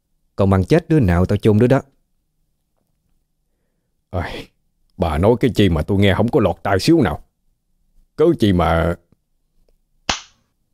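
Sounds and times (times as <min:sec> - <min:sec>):
speech: 0:00.4 - 0:01.9, 0:04.1 - 0:07.3, 0:08.2 - 0:09.0
hard slap across the face: 0:10.1 - 0:10.4.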